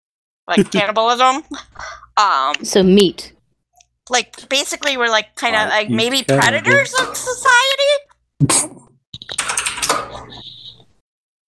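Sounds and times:
laughter: 0.5s - 1.7s
speech: 0.5s - 3.4s, 4.1s - 8.8s
rapid typing on a computer keyboard: 9.2s - 10.5s.

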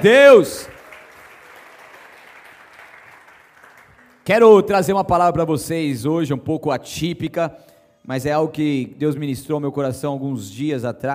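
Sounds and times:
speech: 0.0s - 0.7s, 4.2s - 11.1s
audience applauding: 0.0s - 4.3s.

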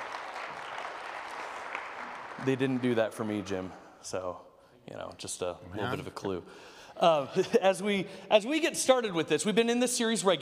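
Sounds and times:
audience applause: 0.0s - 3.6s
speech: 2.4s - 10.4s.

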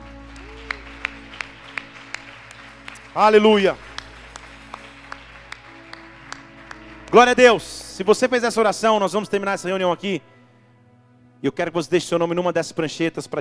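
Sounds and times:
audience applause: 0.0s - 8.0s
speech: 3.2s - 3.8s, 7.1s - 10.3s, 11.4s - 13.3s.

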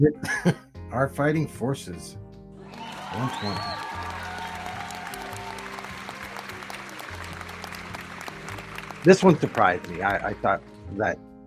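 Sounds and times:
speech: 0.0s - 2.2s, 3.1s - 4.0s, 9.0s - 11.3s
audience applause: 2.6s - 10.9s.

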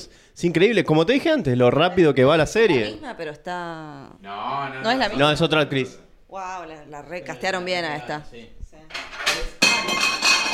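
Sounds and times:
speech: 0.0s - 10.2s
cat knocking over dishes and cutlery: 8.9s - 10.5s.

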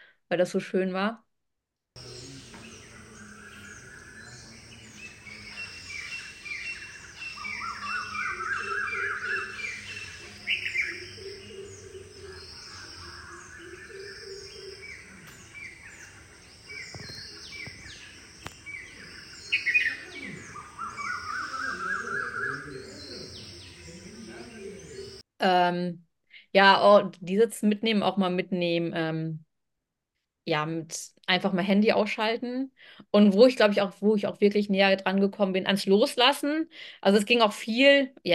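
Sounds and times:
speech: 0.3s - 1.3s, 26.6s - 29.5s, 30.5s - 38.3s
birds: 2.0s - 25.2s
cicadas chirping: 2.0s - 25.2s.

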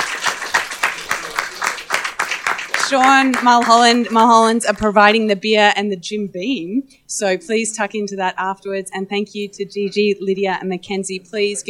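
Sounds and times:
audience clapping at a live recording event: 0.0s - 4.8s
speech: 2.9s - 11.6s.

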